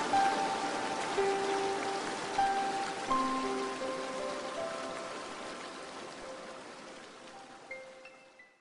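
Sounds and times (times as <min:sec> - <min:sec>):
waterfall: 0:00.0 - 0:08.6.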